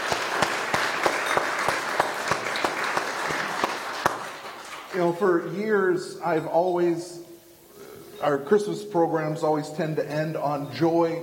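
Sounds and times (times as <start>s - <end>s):
audience applause: 0.0s - 5.2s
speech: 5.0s - 7.2s, 8.2s - 11.2s.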